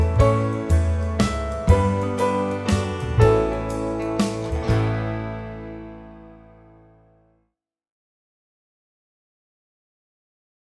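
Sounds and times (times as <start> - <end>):
backing track: 0.0 - 6.9.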